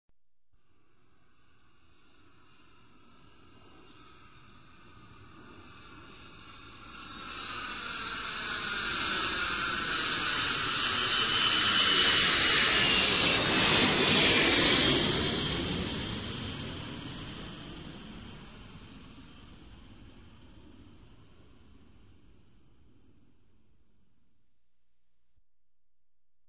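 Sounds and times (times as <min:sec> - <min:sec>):
jet aircraft flyby: 0:02.5 - 0:23.2.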